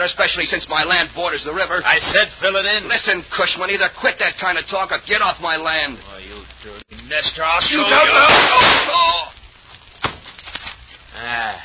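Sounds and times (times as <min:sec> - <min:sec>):
speech: 0:00.0 - 0:09.2
gunshot: 0:08.2 - 0:09.2.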